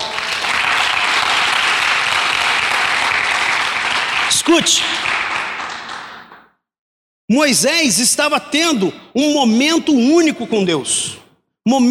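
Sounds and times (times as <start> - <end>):
audience applauding: 0.0 - 6.5
speech: 4.5 - 5.2, 7.3 - 11.8.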